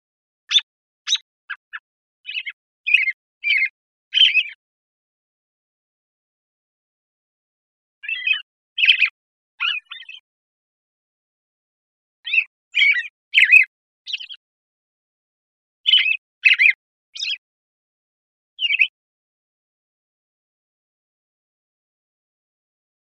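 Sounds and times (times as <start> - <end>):
American robin chirping call notes: 0.5 - 4.6, 8.0 - 10.3, 12.3 - 14.4, 15.9 - 17.4, 18.6 - 18.9.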